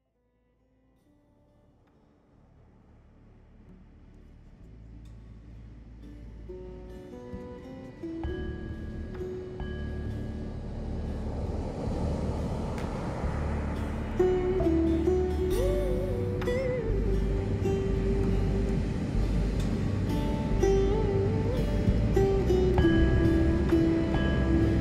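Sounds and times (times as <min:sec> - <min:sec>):
surf music: 0:05.8 - 0:24.8.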